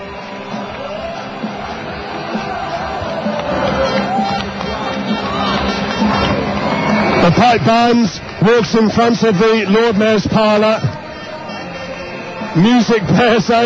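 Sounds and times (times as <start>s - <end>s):
crowd of fans cheering: 0.0s - 13.6s
speech: 7.3s - 10.9s, 12.5s - 13.6s.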